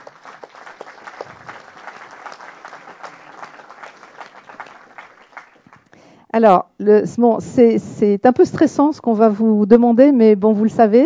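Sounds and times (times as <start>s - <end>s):
crowd applauding: 0.0s - 5.9s
speech: 6.3s - 11.0s.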